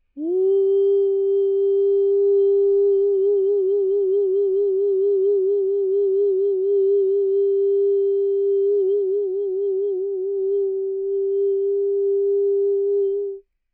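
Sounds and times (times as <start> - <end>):
falsetto voice: 0.0 - 13.4.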